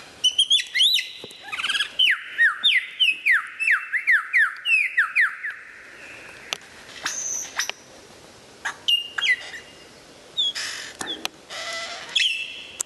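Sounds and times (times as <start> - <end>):
white-rumped shama song: 0.2 - 5.7, 7.1 - 7.7, 8.9 - 11.2, 12.1 - 12.8.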